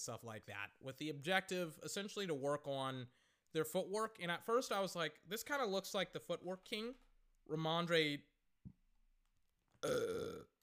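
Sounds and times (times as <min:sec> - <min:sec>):
speech: 0:00.0 - 0:08.8, 0:09.8 - 0:10.5
burp: 0:09.8 - 0:10.6.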